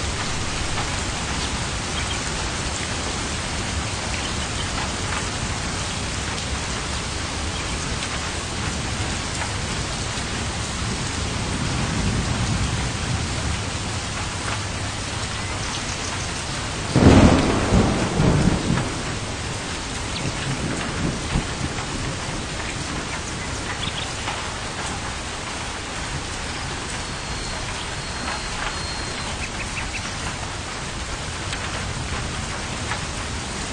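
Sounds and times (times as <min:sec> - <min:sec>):
steady dense rain with drops pattering on a surface: 0:00.0 - 0:33.7.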